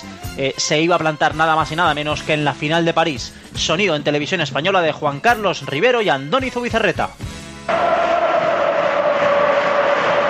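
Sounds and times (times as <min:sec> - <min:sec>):
speech: 0:00.4 - 0:07.8
football crowd cheering at Mestalla stadium during a Valencia match: 0:07.7 - 0:10.2.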